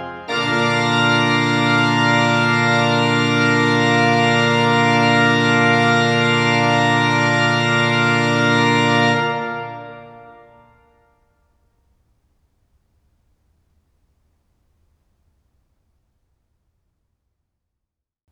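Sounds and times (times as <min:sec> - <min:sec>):
organist playing a postlude in B flat: 0:00.0 - 0:11.0.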